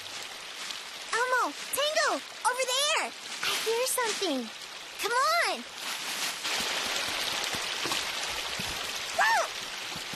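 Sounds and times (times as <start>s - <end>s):
small stream of trickling water: 0.0s - 10.1s
speech: 1.5s - 5.8s.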